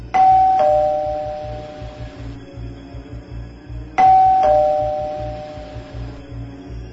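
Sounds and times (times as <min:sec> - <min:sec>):
two-tone doorbell ding-dong: 0:00.2 - 0:01.8, 0:04.0 - 0:05.8.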